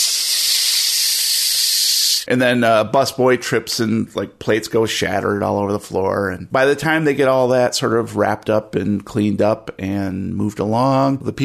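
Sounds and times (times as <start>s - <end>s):
espresso machine steam wand hissing: 0.0s - 2.3s
speech: 2.2s - 11.4s.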